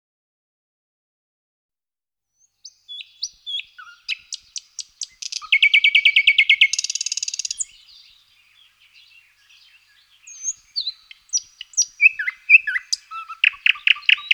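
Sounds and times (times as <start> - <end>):
thrush nightingale singing: 2.4 - 14.3.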